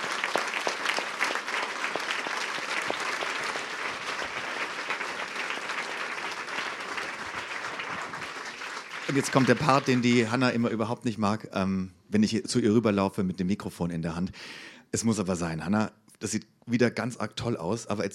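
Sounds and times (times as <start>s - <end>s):
audience applause: 0.0s - 10.6s
speech: 9.1s - 18.1s.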